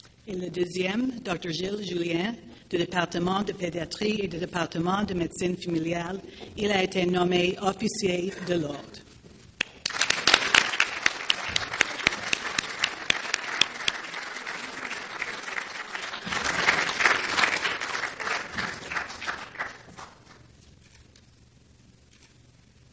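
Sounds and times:
speech: 0:00.3 - 0:09.1
audience applause: 0:09.6 - 0:20.4.

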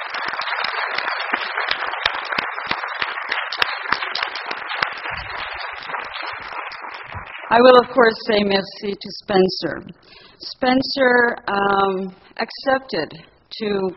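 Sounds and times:
audience applause: 0:00.0 - 0:08.2
speech: 0:07.5 - 0:13.9.

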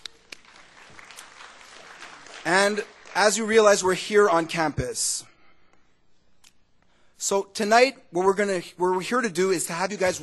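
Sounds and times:
audience applauding at an evening campus gathering: 0:00.0 - 0:03.8
speech: 0:02.5 - 0:05.3, 0:07.2 - 0:10.2.

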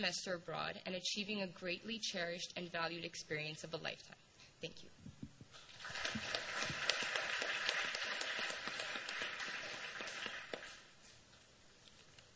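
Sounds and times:
speech: 0:00.0 - 0:05.1
audience applause: 0:05.7 - 0:10.8.

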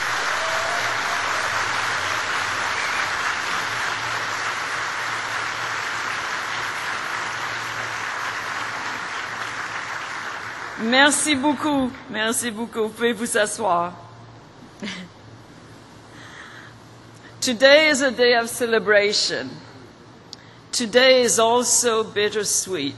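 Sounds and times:
large crowd applauding: 0:00.0 - 0:10.9
speech: 0:10.8 - 0:14.0, 0:14.8 - 0:15.2, 0:17.5 - 0:19.7, 0:20.7 - 0:22.9.

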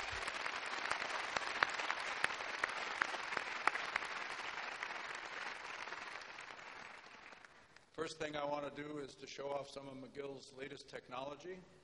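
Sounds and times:
audience applause for a musical group at a university ceremony: 0:00.0 - 0:07.7
speech: 0:08.0 - 0:11.8.

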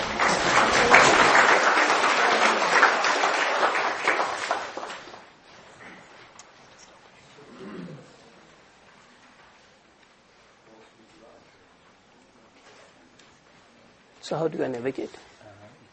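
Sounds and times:
audience applause: 0:00.0 - 0:05.3
speech: 0:14.3 - 0:15.3.

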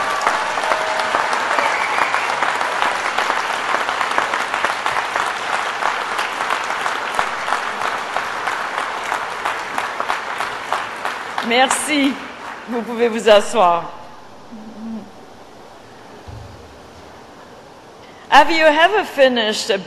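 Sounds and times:
audience applause: 0:00.0 - 0:12.9
speech: 0:11.5 - 0:14.0, 0:18.4 - 0:19.8.

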